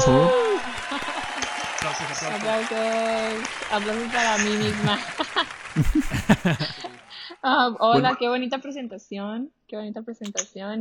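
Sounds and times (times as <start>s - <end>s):
speech: 0.0s - 0.4s, 2.2s - 6.8s, 7.4s - 10.7s
applause: 0.0s - 7.3s
laughter: 0.0s - 8.2s.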